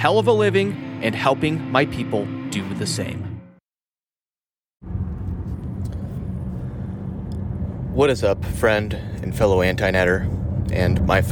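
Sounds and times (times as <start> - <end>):
speech: 0.0 - 3.3, 8.0 - 11.3
car driving to the office: 4.8 - 11.3.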